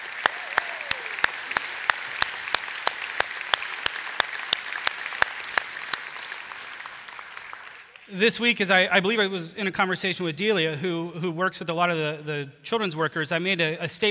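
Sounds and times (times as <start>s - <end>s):
audience applause: 0.0s - 8.2s
speech: 8.1s - 14.0s.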